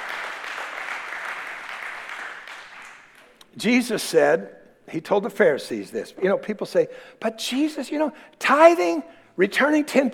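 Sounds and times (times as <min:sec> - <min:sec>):
audience hand clapping: 0:00.0 - 0:03.4
speech: 0:03.6 - 0:10.1.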